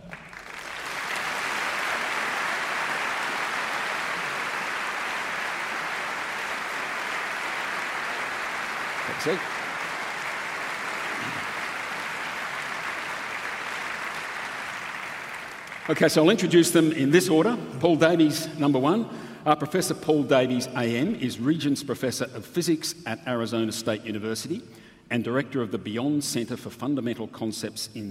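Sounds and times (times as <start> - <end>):
audience applauding panellists at a talk evening: 0.0 - 16.9
speech: 9.2 - 9.6, 15.9 - 28.0.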